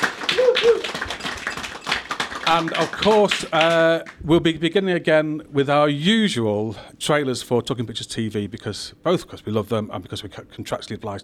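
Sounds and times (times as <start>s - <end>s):
audience applause: 0.0s - 4.2s
speech: 2.5s - 11.2s.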